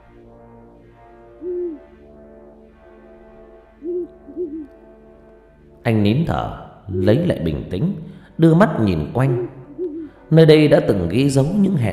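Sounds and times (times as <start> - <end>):
steady low hum: 0.0 - 11.9
owl hooting: 1.4 - 1.9, 3.8 - 4.8, 9.1 - 10.3
speech: 5.8 - 9.6, 10.3 - 11.9.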